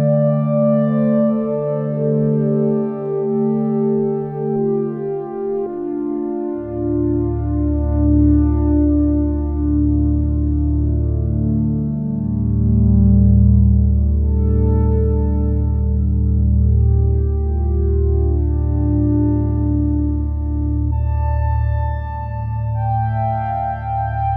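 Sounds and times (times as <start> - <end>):
soft synthesizer pad: 0.0 - 24.3.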